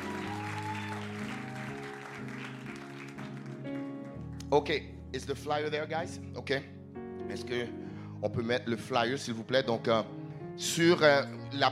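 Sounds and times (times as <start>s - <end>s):
church audience applauding the musicians: 0.0s - 4.2s
sustained keyboard chords: 0.0s - 11.7s
speech: 4.5s - 11.7s.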